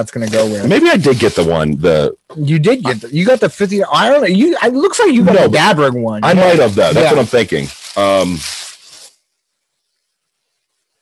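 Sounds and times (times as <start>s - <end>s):
plastic packaging tearing and crinkling: 0.0s - 1.6s, 6.2s - 9.1s
speech: 0.0s - 8.6s.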